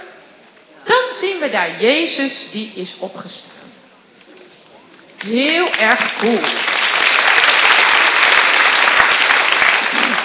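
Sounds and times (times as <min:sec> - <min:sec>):
speech: 0:01.2 - 0:03.5, 0:05.2 - 0:06.7
audience applause: 0:05.7 - 0:10.2.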